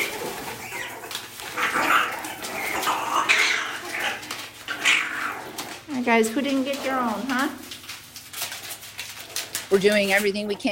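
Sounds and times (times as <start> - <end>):
mongooses hollering impatiently: 0.0 - 5.4
low steady hum: 0.0 - 10.7
speech: 6.1 - 7.7, 9.7 - 10.7.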